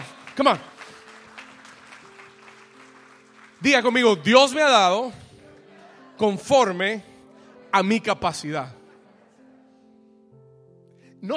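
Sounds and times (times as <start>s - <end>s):
audience applause: 0.0s - 4.8s
speech: 0.4s - 0.8s, 3.6s - 5.2s, 6.2s - 7.1s, 7.7s - 8.8s.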